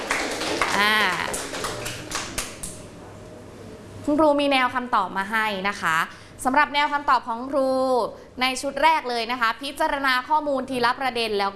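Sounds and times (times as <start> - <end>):
classroom applause for a classmate: 0.0 - 2.8
speech: 0.8 - 1.4, 4.1 - 11.5.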